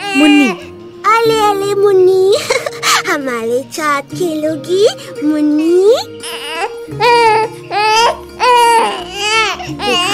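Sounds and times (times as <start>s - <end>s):
sick baby girl crying loudly: 0.0s - 1.4s, 6.0s - 10.1s
speech: 0.2s - 8.2s.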